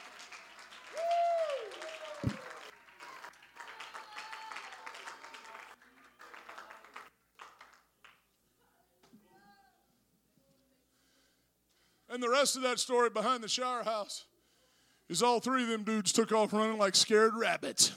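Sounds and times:
audience clapping: 0.0s - 8.3s
speech: 12.2s - 14.3s, 15.1s - 17.9s.

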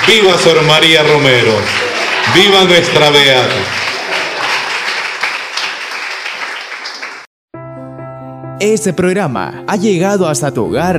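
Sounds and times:
speech: 0.0s - 3.8s, 8.6s - 10.9s
crowd giving strong applause: 0.0s - 7.3s.

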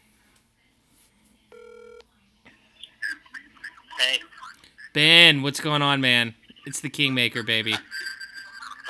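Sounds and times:
telephone dialing tones: 1.5s - 2.0s
speech: 4.0s - 4.4s, 5.0s - 8.0s.

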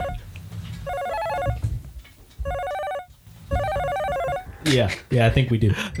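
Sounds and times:
telephone ringing with an incoming call: 0.0s - 1.6s, 2.4s - 4.7s
speech: 4.7s - 5.9s.

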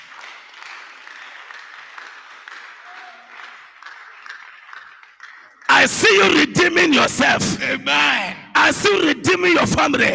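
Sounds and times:
audience clapping: 0.0s - 6.6s
speech: 5.8s - 10.1s.

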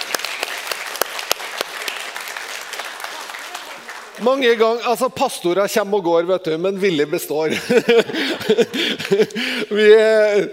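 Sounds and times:
audience applause: 0.0s - 4.7s
speech: 4.2s - 10.5s
laughter: 7.4s - 10.4s.

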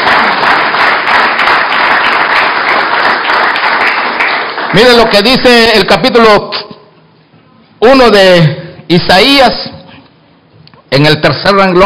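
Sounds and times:
audience clapping: 0.0s - 5.9s
speech: 4.8s - 6.6s, 7.8s - 9.8s, 10.9s - 11.8s.

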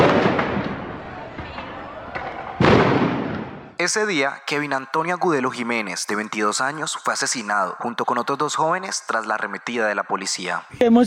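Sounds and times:
crowd shouting: 0.0s - 3.8s
popping bangs: 0.0s - 3.8s
stun grenade blast: 0.0s - 3.8s
speech: 3.8s - 11.0s.

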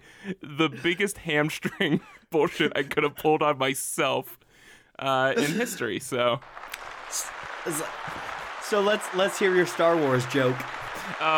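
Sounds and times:
speech: 0.2s - 4.4s, 5.0s - 11.3s
applause sound effect from soundboard: 6.3s - 11.3s.

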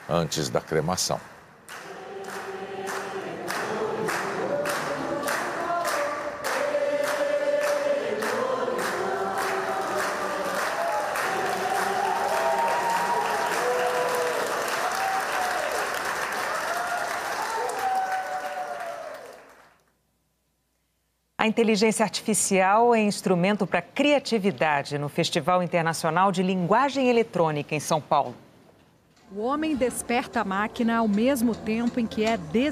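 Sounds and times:
applause from a large group at a memorial gathering: 0.0s - 19.9s
speech: 0.1s - 1.4s, 21.5s - 28.4s, 29.3s - 32.6s
singing: 1.8s - 14.4s.

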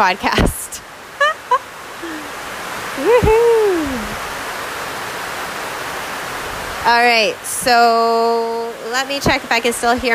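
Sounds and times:
speech: 0.0s - 0.9s, 3.0s - 3.7s, 6.8s - 10.1s
heavy rain pouring in a jungle: 0.0s - 10.1s
rising and falling tonal calls: 1.2s - 4.2s.

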